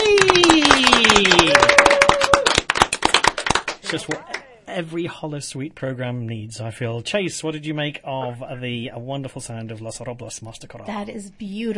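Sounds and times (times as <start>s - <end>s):
whoops and whistled cheers: 0.0s - 2.6s
audience clapping: 0.0s - 4.6s
speech: 3.9s - 11.7s.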